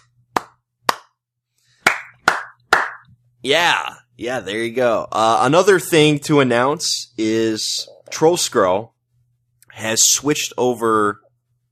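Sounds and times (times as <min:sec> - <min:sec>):
hand claps: 0:00.0 - 0:01.2, 0:01.8 - 0:03.1
speech: 0:03.4 - 0:08.9, 0:09.8 - 0:11.2.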